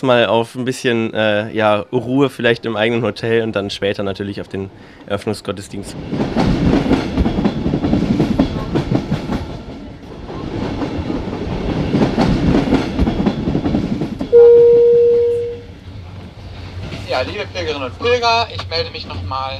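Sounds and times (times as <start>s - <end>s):
speech: 0.0s - 6.9s, 17.2s - 19.5s
passenger train rumbling along the rails with wheels clattering: 1.5s - 19.5s
loud sustained train horn blast: 14.3s - 15.8s.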